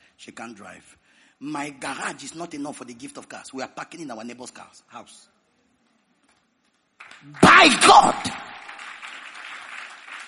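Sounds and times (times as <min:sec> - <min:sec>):
speech: 0:00.2 - 0:05.4, 0:07.2 - 0:08.4
audience clapping: 0:06.9 - 0:10.2.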